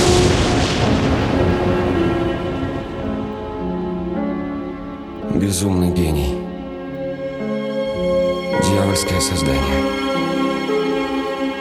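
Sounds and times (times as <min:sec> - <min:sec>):
thunderclap: 0:00.0 - 0:05.6
rain: 0:00.0 - 0:11.5
speech: 0:05.4 - 0:06.4, 0:08.9 - 0:10.8.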